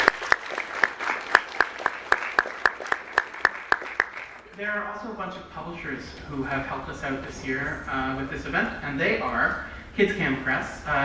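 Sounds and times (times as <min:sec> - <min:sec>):
round of applause from audience: 0:00.0 - 0:04.6
speech: 0:04.6 - 0:11.0.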